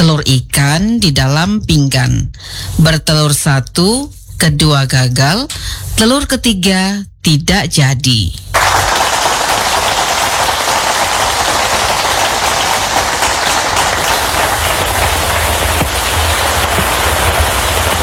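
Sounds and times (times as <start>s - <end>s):
speech: 0.2s - 8.6s
heavy rain falling: 8.6s - 18.0s.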